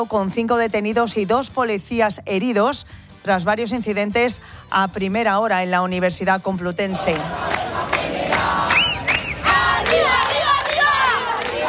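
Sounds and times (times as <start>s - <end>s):
speech: 0.0s - 8.5s
large protest crowd chanting in a square: 6.9s - 11.6s
shrill whistles: 8.7s - 9.6s.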